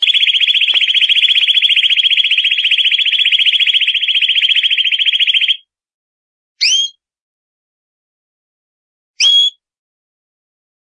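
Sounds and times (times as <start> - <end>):
champion canary song: 0.0 - 5.6.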